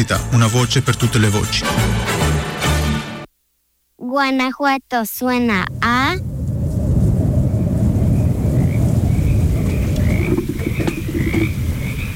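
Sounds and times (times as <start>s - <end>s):
speech: 0.0s - 2.1s, 4.1s - 6.3s
chorus of frogs croaking: 5.3s - 12.1s.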